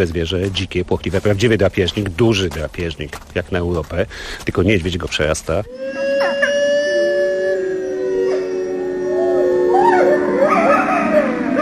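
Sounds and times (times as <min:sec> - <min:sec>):
speech: 0:00.0 - 0:06.0
chorus of wavering, yipping cries: 0:05.7 - 0:09.0, 0:09.8 - 0:11.6
wolves howling: 0:05.7 - 0:11.6.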